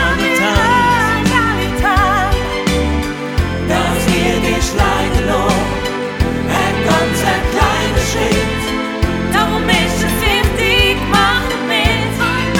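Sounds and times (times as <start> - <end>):
hymn sung in dialect: 0.0 - 2.3, 3.6 - 12.5.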